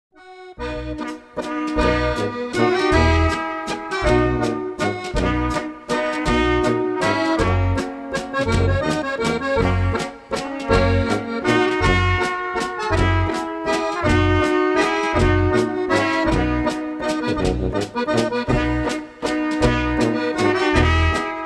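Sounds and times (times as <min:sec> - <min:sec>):
waltz music: 0:00.2 - 0:21.4.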